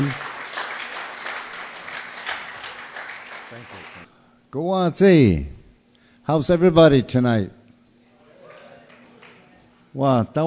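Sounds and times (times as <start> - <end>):
crowd applauding: 0.0 - 4.1, 8.4 - 9.5
speech: 4.5 - 5.6, 6.3 - 7.6, 10.0 - 10.4.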